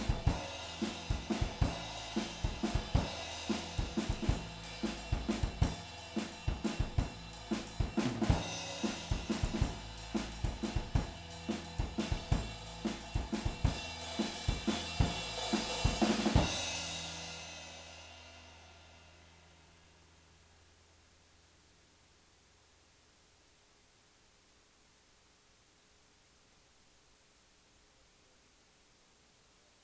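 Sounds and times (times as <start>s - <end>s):
full band playing in monitor mix: 0.0s - 16.7s.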